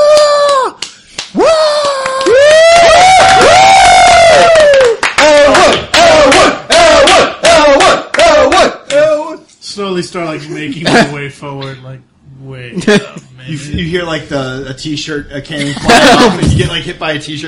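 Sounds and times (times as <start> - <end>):
voices whooping and cheering: 0.0 - 0.8, 1.4 - 8.6
audience applause: 0.0 - 6.0
speech: 10.1 - 12.1, 12.8 - 17.4
laughter: 12.8 - 13.8, 15.5 - 17.0.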